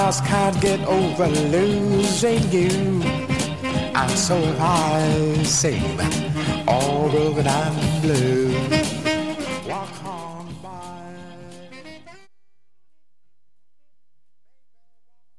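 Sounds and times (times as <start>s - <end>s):
musical trio: 0.0s - 12.1s.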